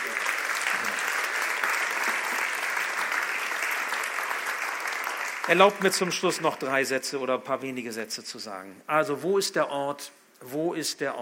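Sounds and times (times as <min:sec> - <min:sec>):
audience applause: 0:00.0 - 0:06.7
speech: 0:05.5 - 0:11.2.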